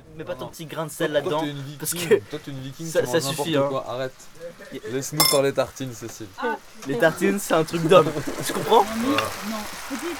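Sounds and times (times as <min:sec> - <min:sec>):
potatoes frying in a pan: 0:00.0 - 0:10.1
speech: 0:00.2 - 0:10.1.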